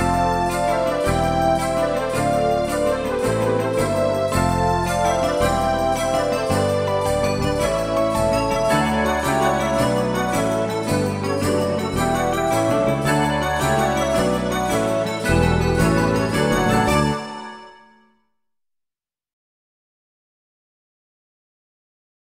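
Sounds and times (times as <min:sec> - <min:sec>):
snowbells: 0:00.0 - 0:17.8.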